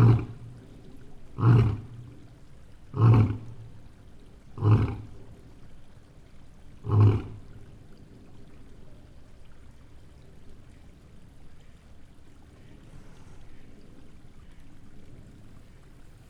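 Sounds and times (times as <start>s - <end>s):
lions roaring at a zoo: 0.0s - 0.5s, 1.4s - 2.2s, 3.0s - 3.6s, 4.6s - 5.1s, 6.8s - 7.4s
stream flowing: 0.0s - 16.2s.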